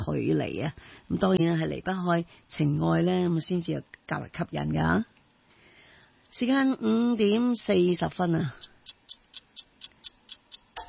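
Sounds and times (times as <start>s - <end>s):
speech: 0.0s - 5.1s, 6.3s - 8.7s
clock ticking: 8.0s - 10.8s.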